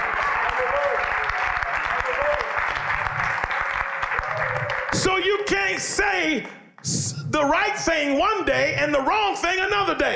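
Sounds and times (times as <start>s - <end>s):
sustained crowd applause: 0.0s - 6.6s
speech: 4.9s - 10.1s.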